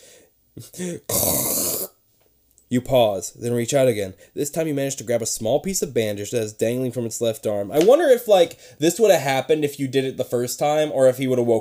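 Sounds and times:
speech: 0.6s - 1.6s, 2.7s - 11.5s
person imitating a loud gross snore: 0.8s - 2.0s.

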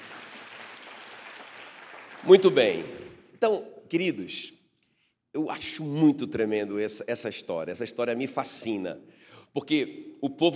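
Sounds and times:
audience applauding: 0.0s - 3.1s
speech: 2.2s - 4.6s, 5.4s - 10.5s.

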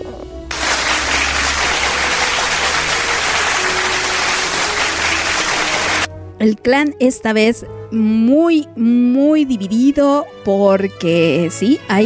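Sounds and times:
applause: 0.5s - 6.1s
speech: 6.4s - 12.0s.

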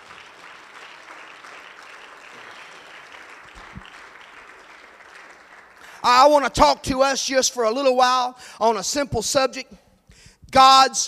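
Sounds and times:
audience clapping hands: 0.0s - 6.9s
speech: 6.0s - 9.8s, 10.5s - 11.0s.

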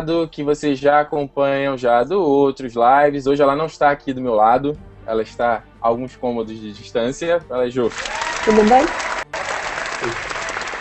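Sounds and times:
speech: 0.0s - 9.1s
applause: 7.8s - 10.7s.

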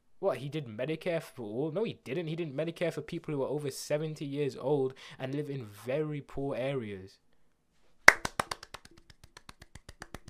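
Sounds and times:
speech: 0.2s - 7.2s
one person clapping hands: 8.1s - 10.2s.

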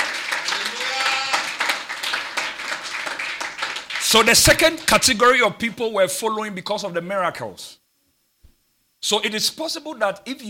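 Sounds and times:
audience clapping: 0.0s - 5.3s
speech: 4.1s - 7.8s, 9.0s - 10.4s.

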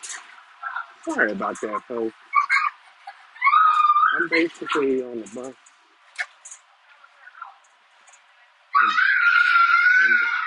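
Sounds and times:
speech: 1.0s - 2.3s, 4.2s - 5.6s
child acting crazy on a bus: 8.8s - 10.4s.

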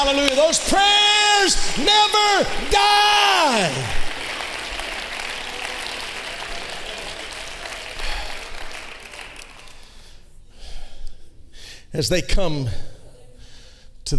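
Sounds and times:
speech: 0.0s - 4.0s, 11.9s - 12.9s
audience clapping hands: 0.0s - 10.2s.

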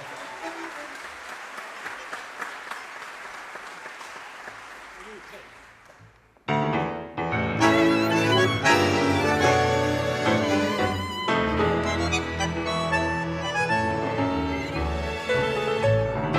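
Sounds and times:
audience applause: 0.0s - 6.2s
bright instrumental music: 6.6s - 16.3s.

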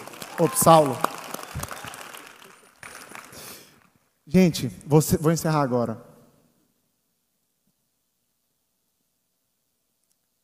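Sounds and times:
audience applause: 0.0s - 3.9s
speech: 0.4s - 1.1s, 4.4s - 6.1s.

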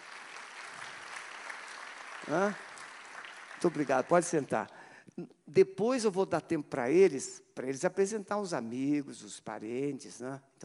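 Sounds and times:
crowd applause: 0.0s - 4.5s
speech: 2.3s - 2.7s, 3.6s - 10.6s.

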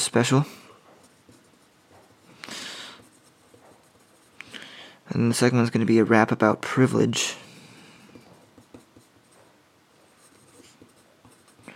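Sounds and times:
speech: 0.1s - 0.6s, 5.2s - 7.4s
pen scratching on paper writing by hand: 0.9s - 4.4s, 8.2s - 11.7s.

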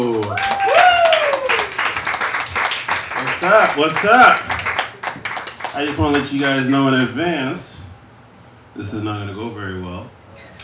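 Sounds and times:
audience applause: 0.0s - 6.5s
speech: 3.5s - 4.6s, 5.8s - 7.7s, 8.8s - 10.5s.

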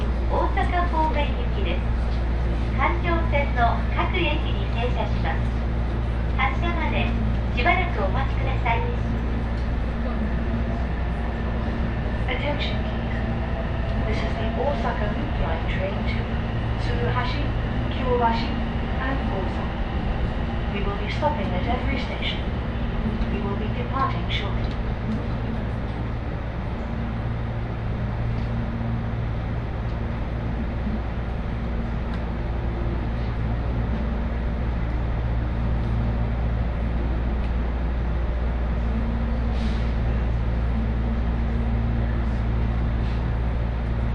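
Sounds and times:
Osaka Loop Line inner-circle train rumbling hum: 0.0s - 44.1s.

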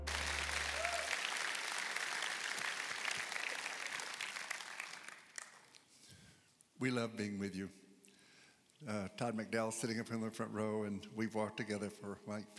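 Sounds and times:
church audience at Beltway Park clapping to welcome a guest speaker: 0.1s - 5.9s
speech: 6.8s - 7.8s, 8.8s - 12.5s.

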